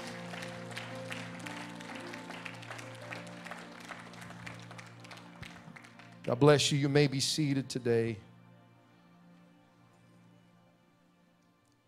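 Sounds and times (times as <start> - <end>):
audience clapping hands: 0.0 - 6.9
speech: 6.3 - 8.3.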